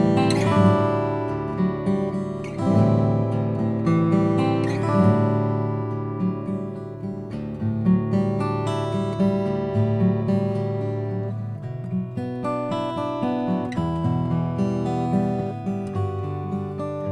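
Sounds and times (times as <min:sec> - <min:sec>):
Lowden F32C Indian rosewood acoustic guitar: 0:00.0 - 0:17.1.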